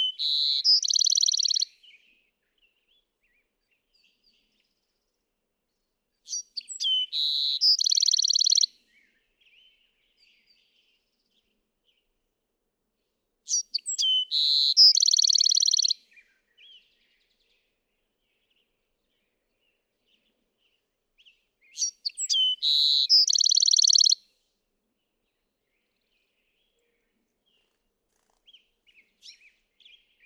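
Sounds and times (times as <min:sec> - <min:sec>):
Bewick's wren song: 0:00.0 - 0:01.7, 0:06.3 - 0:08.7, 0:13.5 - 0:16.0, 0:21.7 - 0:24.2.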